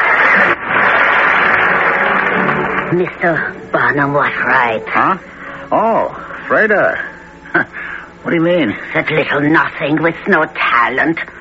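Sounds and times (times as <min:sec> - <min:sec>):
crowd applauding: 0:00.0 - 0:03.8
speech: 0:02.9 - 0:11.4.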